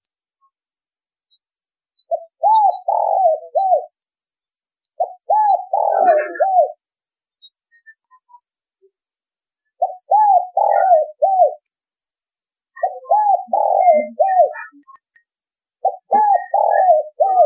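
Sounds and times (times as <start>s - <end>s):
spotted dove cooing: 2.1s - 4.0s, 5.0s - 6.8s, 9.8s - 11.6s, 12.8s - 14.8s, 15.8s - 17.4s.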